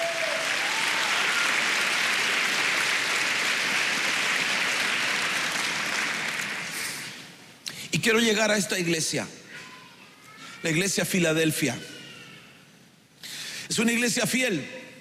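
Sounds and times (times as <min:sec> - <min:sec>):
audience clapping hands: 0:00.0 - 0:07.4
speech: 0:08.0 - 0:09.4, 0:10.6 - 0:12.0, 0:13.8 - 0:14.8.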